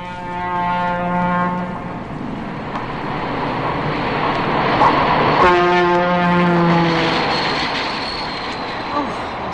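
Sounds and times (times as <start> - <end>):
train horn: 0.0 - 2.0, 5.4 - 7.4
passing train: 0.0 - 9.5.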